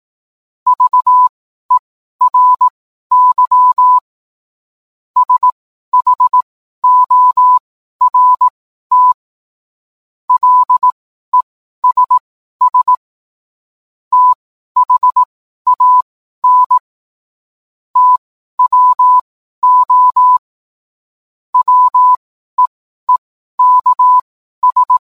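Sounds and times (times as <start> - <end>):
morse code beeps: 0.7 - 1.3, 2.2 - 4.0, 5.2 - 9.2, 10.3 - 11.0, 11.8 - 13.0, 14.1 - 16.8, 18.0 - 20.4, 21.6 - 25.0.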